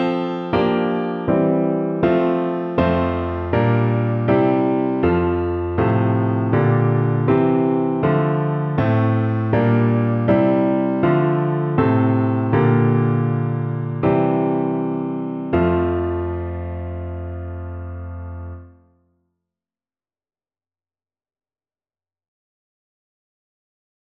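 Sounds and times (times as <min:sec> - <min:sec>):
piano: 0:00.0 - 0:19.0.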